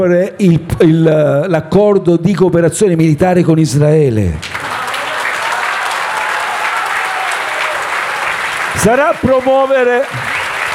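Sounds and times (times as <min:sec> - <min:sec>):
speech: 0:00.0 - 0:04.6, 0:08.8 - 0:10.4
audience applause: 0:04.4 - 0:10.7.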